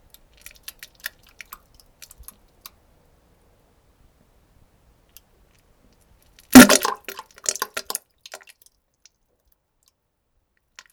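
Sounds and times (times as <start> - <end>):
squelching fart: 6.6 - 7.2
plopping splash: 6.6 - 8.0.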